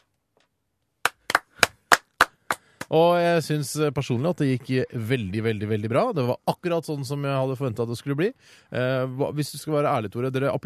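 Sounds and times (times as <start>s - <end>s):
slow hand claps in a studio: 1.0s - 2.9s
speech: 2.9s - 10.6s.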